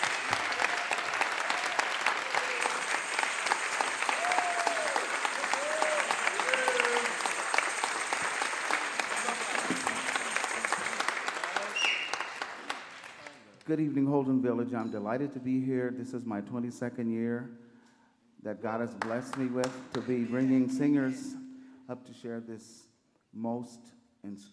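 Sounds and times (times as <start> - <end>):
crowd applauding: 0.0 - 13.5
faint voices and whoops: 0.4 - 2.8, 4.0 - 7.3
speech: 13.7 - 17.6, 18.4 - 24.5.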